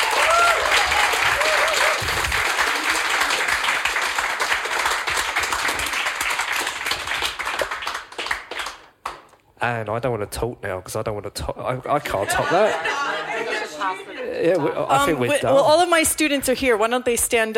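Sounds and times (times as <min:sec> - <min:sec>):
faint voices and whoops: 0:00.0 - 0:02.3
crowd applauding: 0:00.0 - 0:09.3
speech: 0:09.6 - 0:13.2, 0:13.8 - 0:17.5
laughter: 0:11.9 - 0:15.2.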